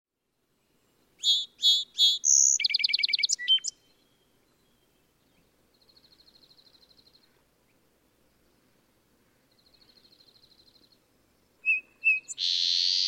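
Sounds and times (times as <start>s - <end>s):
song sparrow singing: 1.2s - 7.4s, 9.5s - 13.0s.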